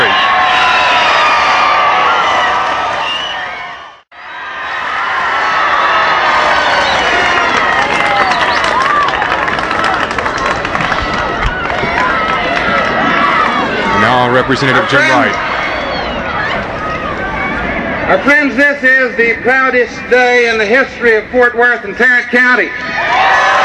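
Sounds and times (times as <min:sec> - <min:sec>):
crowd cheering and whooping: 0:00.0 - 0:18.0, 0:22.8 - 0:23.6
crowd applauding: 0:05.6 - 0:15.3
speech: 0:14.5 - 0:15.5, 0:18.1 - 0:23.0.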